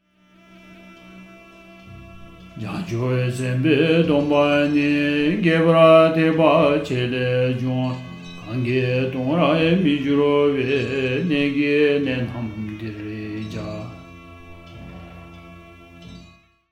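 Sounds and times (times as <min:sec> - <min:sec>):
vocal verse recording with music: 0:01.9 - 0:16.2.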